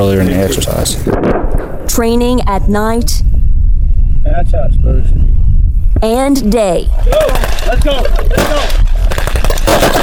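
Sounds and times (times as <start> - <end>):
speech: 0.0 - 3.3, 4.3 - 5.4, 6.0 - 8.8, 9.7 - 10.0
gunfire during a multinational live fire drill: 1.0 - 1.9, 7.1 - 10.0.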